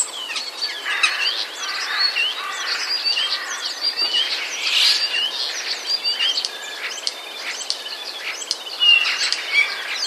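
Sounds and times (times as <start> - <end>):
common starling chattering song: 0.0 - 10.0.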